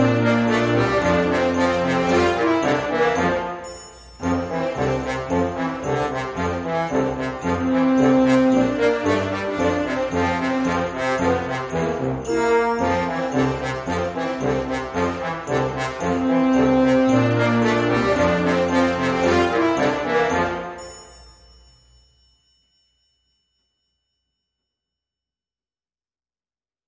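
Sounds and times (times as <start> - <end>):
brassy tune: 0.0 - 21.2.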